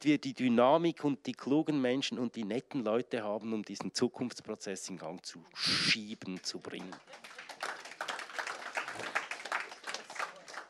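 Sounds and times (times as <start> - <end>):
speech: 0.0 - 7.4
audience applause: 6.8 - 10.6.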